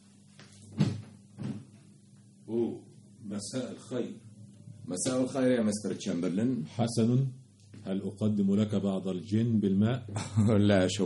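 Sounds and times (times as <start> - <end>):
door being opened: 0.7 - 1.8
speech: 3.4 - 4.3, 4.9 - 11.0.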